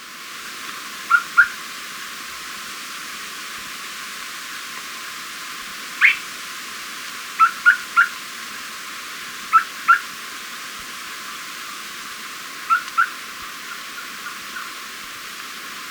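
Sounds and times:
background hiss: 0:00.0 - 0:15.8
Unicolored Tapaculo calls: 0:01.0 - 0:01.7, 0:05.9 - 0:06.4, 0:07.3 - 0:08.8, 0:09.4 - 0:10.3, 0:11.2 - 0:15.1.

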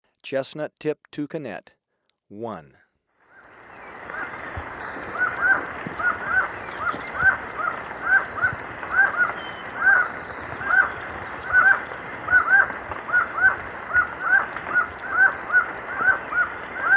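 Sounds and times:
black-mandibled toucan yelping in Ecuador: 0:03.4 - 0:16.9.

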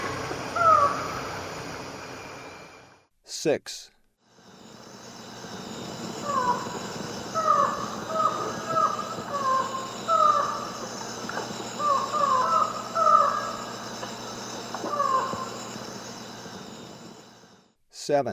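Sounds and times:
Lined Forest-Falcon calling in South American eastern lowlands: 0:00.0 - 0:01.4, 0:04.7 - 0:17.6.

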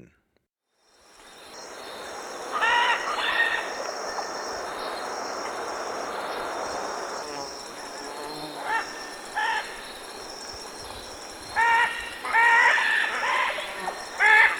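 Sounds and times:
military macaw squawking in Ecuador: 0:02.0 - 0:05.6, 0:07.7 - 0:14.5.

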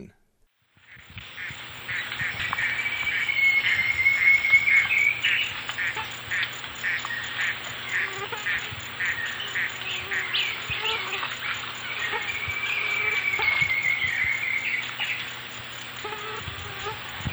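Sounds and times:
Ocellated woodcreeper song: 0:00.7 - 0:17.3.

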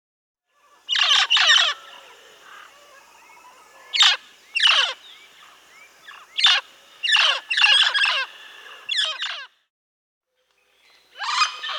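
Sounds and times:
mealy parrot giving harsh chattering squawks in the Amazon region: 0:00.7 - 0:09.5, 0:11.2 - 0:11.7.

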